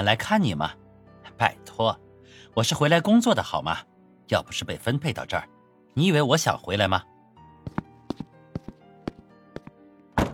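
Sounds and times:
speech: 0.0s - 0.8s, 1.4s - 7.1s
sharp hard footsteps: 7.7s - 9.7s
front door slamming shut: 10.2s - 10.3s.

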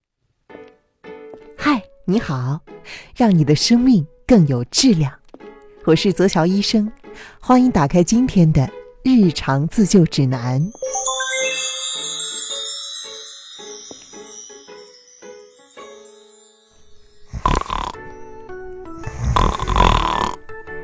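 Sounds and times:
speech: 1.6s - 5.2s, 5.8s - 11.1s
light tinkling musical passage: 10.5s - 19.4s
loud rough rasping snores: 17.3s - 18.0s, 19.0s - 20.5s.

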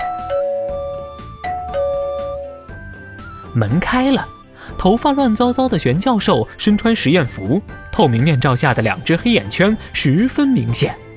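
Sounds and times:
doorbell ding-dong: 0.0s - 2.8s
speech: 3.6s - 11.0s.

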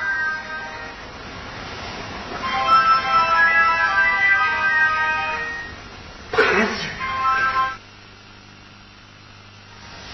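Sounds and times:
telephone ringing: 0.0s - 1.1s, 2.4s - 5.8s, 7.0s - 7.8s.

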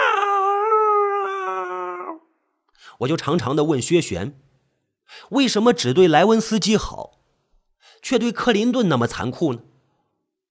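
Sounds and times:
voice imitating a tomcat's yowl: 0.0s - 2.3s
speech: 3.0s - 4.5s, 5.1s - 7.2s, 8.0s - 9.7s.

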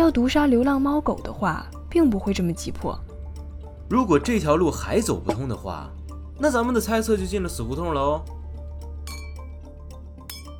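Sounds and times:
speech: 0.1s - 3.1s, 3.9s - 8.4s
tapping an empty wine glass: 9.0s - 9.5s.

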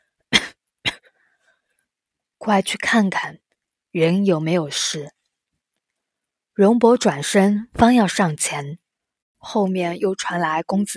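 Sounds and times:
low cough: 0.4s - 1.1s
speech: 2.4s - 5.2s, 6.6s - 8.8s, 9.4s - 10.9s.

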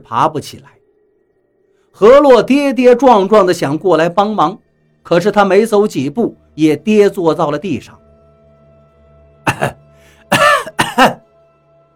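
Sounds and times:
speech: 0.0s - 0.8s, 2.0s - 8.0s, 9.5s - 9.8s, 11.0s - 11.2s
coughing fit: 9.5s - 11.2s.

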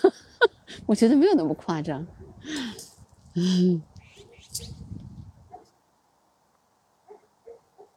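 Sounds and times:
speech: 0.9s - 2.6s, 3.4s - 3.9s
guagua ji bird squawking and croaking: 4.0s - 4.7s.

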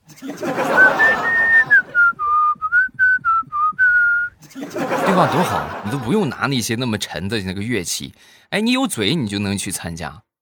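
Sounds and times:
laughter: 0.0s - 2.1s, 4.4s - 6.5s
person whistling a simple tune with their mouth: 0.6s - 4.4s
speech: 5.2s - 10.3s.

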